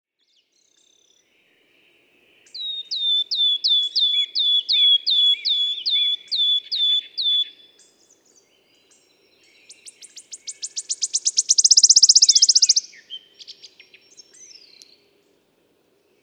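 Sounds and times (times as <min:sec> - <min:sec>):
wood warbler song of descending whistles and a high shivering trill: 0:02.3 - 0:15.1.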